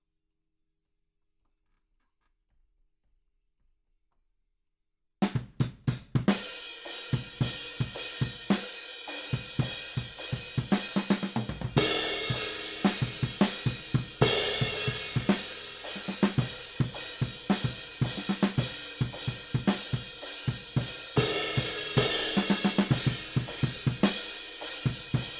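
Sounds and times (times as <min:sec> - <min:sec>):
ride cymbal: 0:06.5 - 0:25.3.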